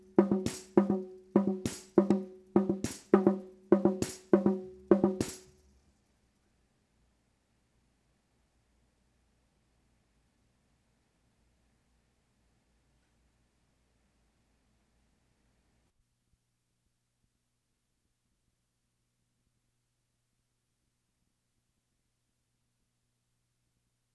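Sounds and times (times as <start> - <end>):
hand drum: 0.0 - 5.4.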